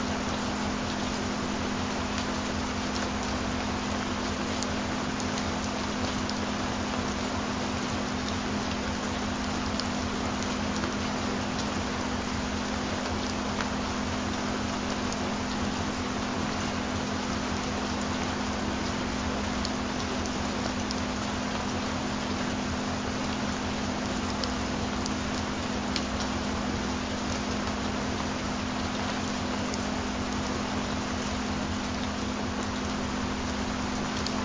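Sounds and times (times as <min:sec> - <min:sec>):
rain: 0:00.0 - 0:34.4.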